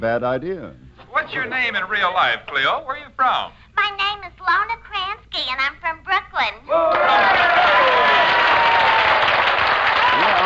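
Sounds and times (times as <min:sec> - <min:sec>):
speech: 0:00.0 - 0:08.1
audience applause from a sizable crowd: 0:06.9 - 0:10.4.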